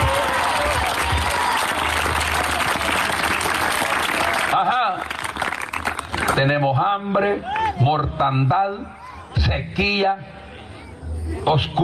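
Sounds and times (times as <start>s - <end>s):
audience applauding: 0.0s - 6.4s
speech: 6.4s - 10.3s, 11.4s - 11.8s.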